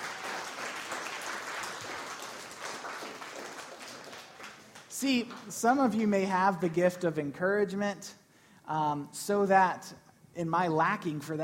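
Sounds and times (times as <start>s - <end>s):
audience applause: 0.0s - 5.5s
speech: 5.0s - 11.4s.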